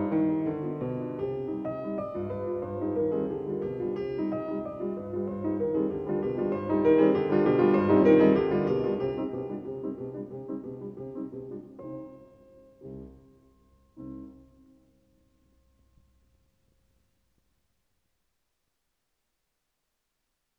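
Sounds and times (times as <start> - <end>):
piano piece in C minor: 0.0 - 16.4.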